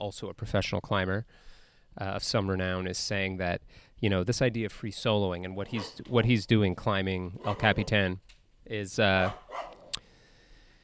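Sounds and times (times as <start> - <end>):
speech: 0.1 - 9.6
dog barking: 5.7 - 6.0, 7.4 - 7.9, 9.2 - 10.0.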